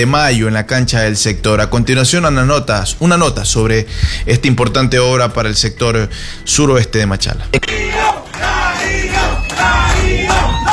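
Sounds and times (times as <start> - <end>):
speech: 0.0 - 8.5
large crowd cheering and shouting: 7.6 - 10.7
applause: 7.7 - 10.7.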